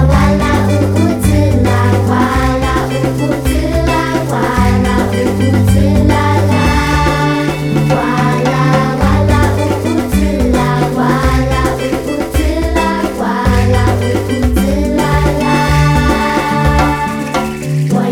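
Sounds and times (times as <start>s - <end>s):
vuvuzela blowing: 0.1s - 17.9s.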